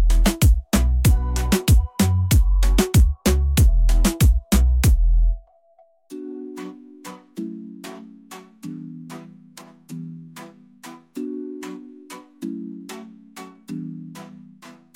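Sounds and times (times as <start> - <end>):
dembow beat: 0.0 - 5.2.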